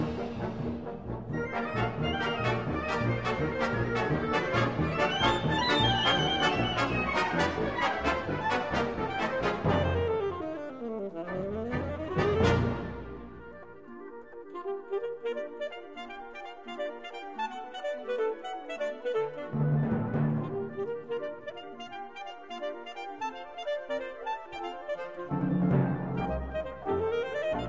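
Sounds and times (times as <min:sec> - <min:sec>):
concert band: 0:00.0 - 0:10.2
alto saxophone: 0:01.3 - 0:27.6.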